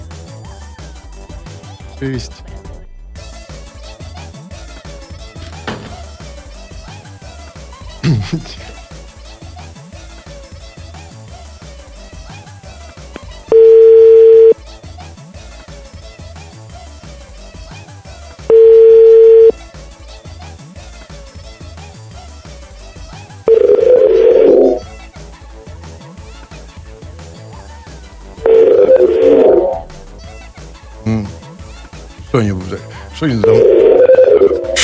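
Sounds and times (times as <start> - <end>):
speech: 2.0 - 2.6, 8.2 - 8.7, 32.4 - 33.7
telephone line beeps: 13.5 - 14.6, 18.5 - 19.5, 23.5 - 24.8, 28.5 - 29.8, 33.4 - 34.8.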